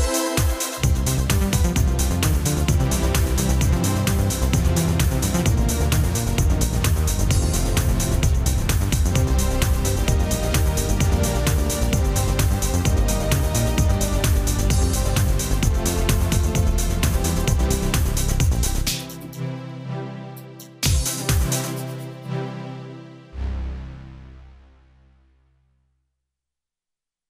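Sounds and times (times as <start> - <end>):
percussion: 0.0 - 19.4, 20.5 - 22.3.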